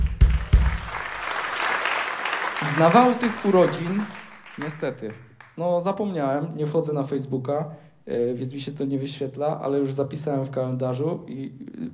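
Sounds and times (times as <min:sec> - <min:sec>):
applause: 0:00.0 - 0:05.6
speech: 0:02.6 - 0:11.9.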